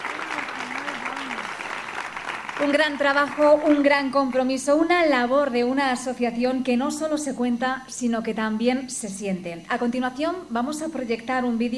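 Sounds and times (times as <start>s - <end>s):
audience applause: 0.0s - 4.5s
speech: 2.6s - 11.7s.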